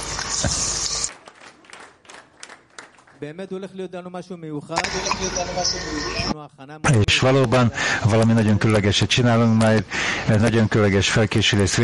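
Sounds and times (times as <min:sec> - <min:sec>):
speech: 0:00.4 - 0:00.7, 0:03.2 - 0:11.8
audience applause: 0:01.0 - 0:03.2.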